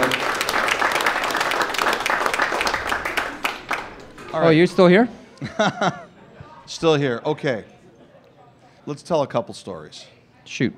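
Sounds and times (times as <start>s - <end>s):
audience applause: 0.0s - 5.0s
laughter: 0.0s - 6.6s
speech: 4.4s - 6.0s, 6.7s - 7.8s, 8.8s - 10.7s.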